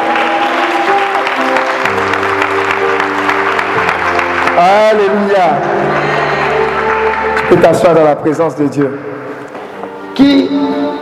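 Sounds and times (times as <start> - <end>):
congregation in church applauding: 0.0 - 8.1
speech: 4.6 - 6.1, 7.5 - 9.1.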